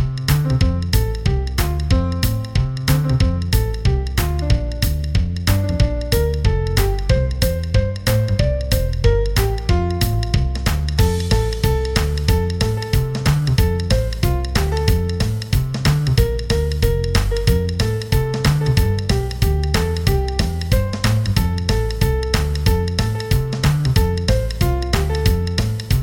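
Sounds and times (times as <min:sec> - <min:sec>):
jazz piece in F major: 0:00.0 - 0:26.0.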